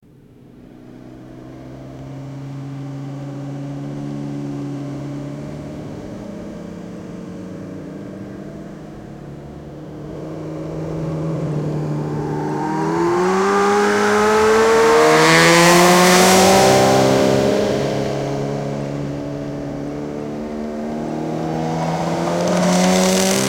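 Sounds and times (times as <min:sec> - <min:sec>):
Honda Shadow 750 Phantom motorcycle riding on road: 0:00.0 - 0:23.4.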